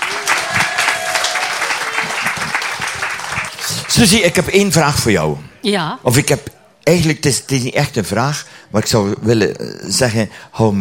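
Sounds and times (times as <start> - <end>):
thunderous audience applause: 0.0 - 4.6
speech: 4.0 - 10.7.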